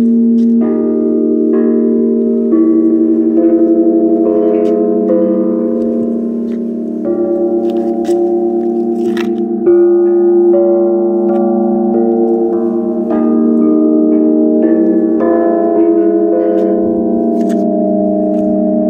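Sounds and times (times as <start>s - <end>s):
bellflower sound: 0.1s - 18.8s.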